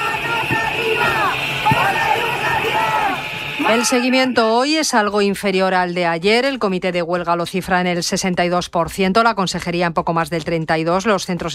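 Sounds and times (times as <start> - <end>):
crowd of protesting teachers shouting: 0.0 - 4.5
speech: 3.7 - 11.5.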